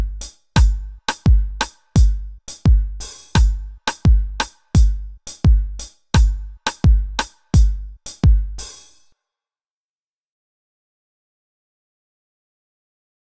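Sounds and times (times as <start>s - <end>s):
kizomba dance beat pattern at 86 bpm: 0.0s - 9.0s.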